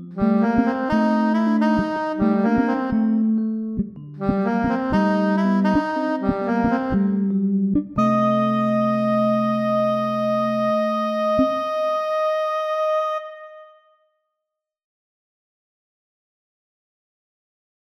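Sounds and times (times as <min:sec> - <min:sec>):
MIDI blues music: 0:00.2 - 0:12.3.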